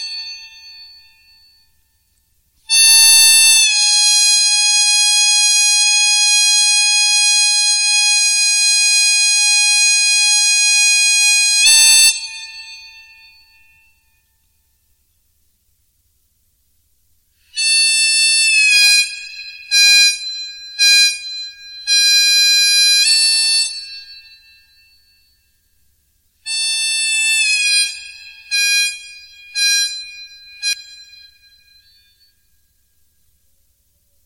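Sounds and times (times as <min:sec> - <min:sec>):
gaita de boca bagpipe bends: 0:02.7 - 0:12.9, 0:17.4 - 0:24.6, 0:26.5 - 0:31.8.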